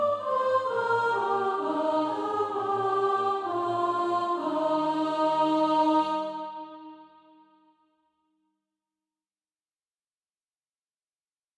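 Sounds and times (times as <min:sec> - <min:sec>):
soprano singing practice music: 0:00.0 - 0:07.2.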